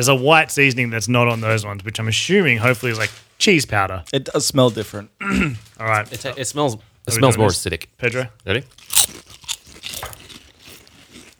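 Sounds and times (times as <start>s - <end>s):
speech: 0.0s - 9.2s
cheese and chives flavoured crisps bitten and crunched: 8.5s - 11.3s.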